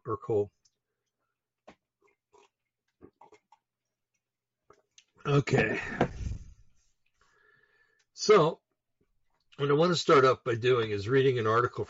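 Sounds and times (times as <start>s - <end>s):
speech: 0.1s - 0.6s, 5.3s - 6.2s, 8.2s - 8.6s, 9.6s - 11.8s
person sipping a drink: 1.9s - 3.9s.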